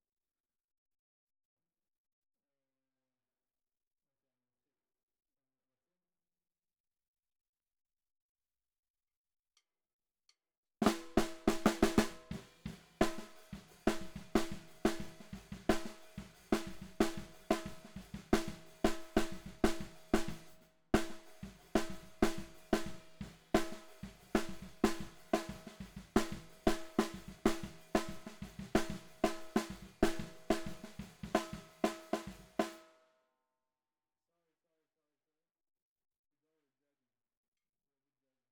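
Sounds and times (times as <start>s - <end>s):
bottom snare drum: 10.8s - 32.8s.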